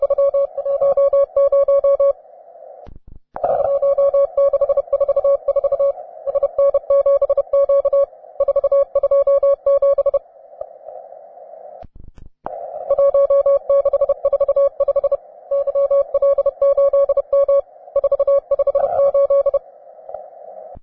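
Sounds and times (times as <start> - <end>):
advanced morse code tones: 0.0 - 2.2, 3.5 - 10.2, 12.9 - 19.6.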